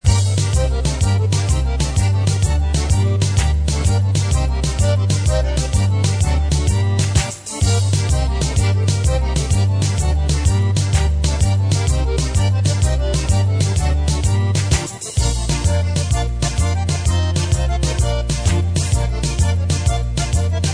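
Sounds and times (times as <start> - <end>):
swing bop music: 0.0 - 20.7.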